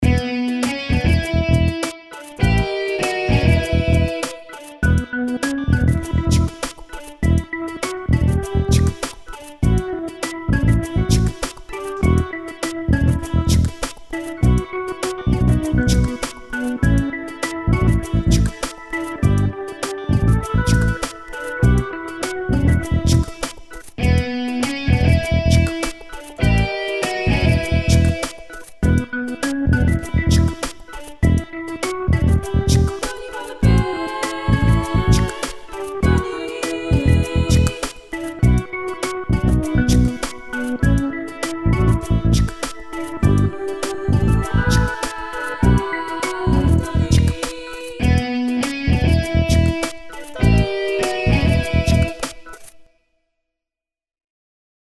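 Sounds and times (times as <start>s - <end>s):
instrumental music without vocals: 0.0s - 52.9s.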